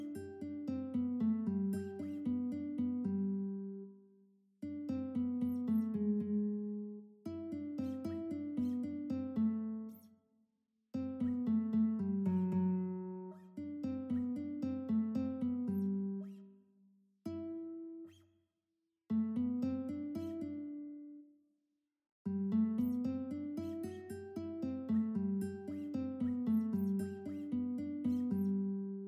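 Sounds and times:
guitar duet: 0.0 - 4.0, 4.6 - 10.1, 10.9 - 16.5, 17.2 - 18.2, 19.1 - 21.2, 22.3 - 29.0.

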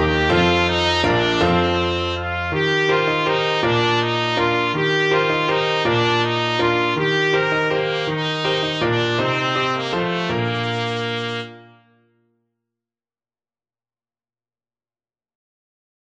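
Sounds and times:
trumpet: 0.0 - 12.0.

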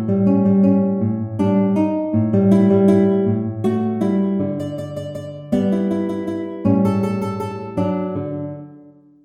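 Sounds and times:
guitar playing a waltz: 0.0 - 9.2.

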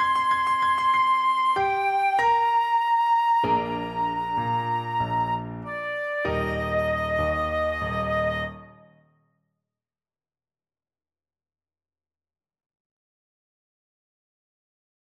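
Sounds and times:
flute: 0.0 - 9.0.

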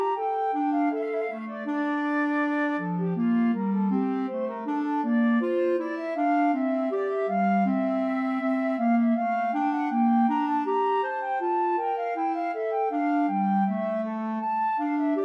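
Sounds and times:
two flutes playing a bourree: 0.0 - 15.2.

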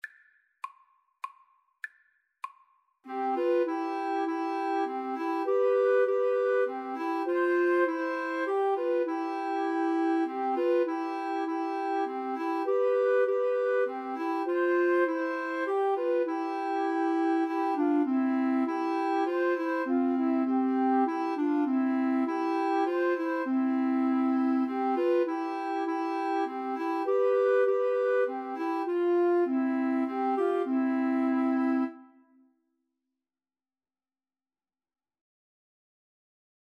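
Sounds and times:
two flutes playing a hymn: 3.1 - 32.2.

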